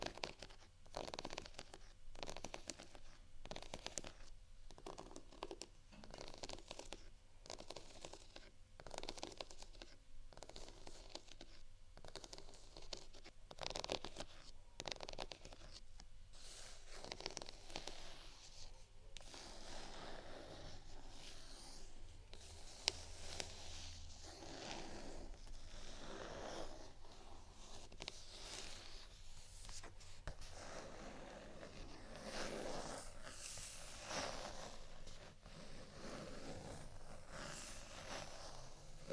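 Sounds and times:
scratching and tapping on textured items: 0.0s - 39.1s.

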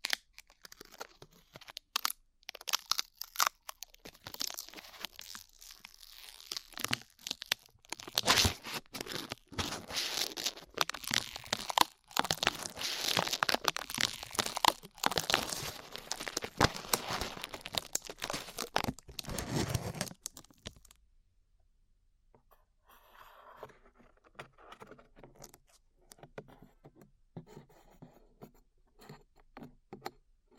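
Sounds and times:
sparse crinkles and soft clicks: 0.0s - 21.0s
glue being peeled away: 0.5s - 20.4s.

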